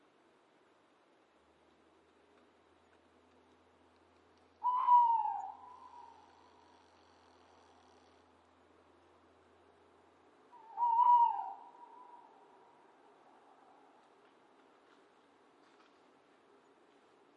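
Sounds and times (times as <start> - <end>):
owl hooting: 4.6 - 8.0, 10.5 - 12.5.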